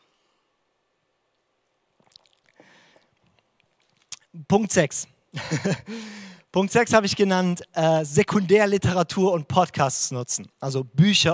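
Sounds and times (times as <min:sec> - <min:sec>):
sip and swallow of a drink: 0:02.0 - 0:04.3
speech: 0:04.4 - 0:11.3
laughter: 0:05.4 - 0:05.9.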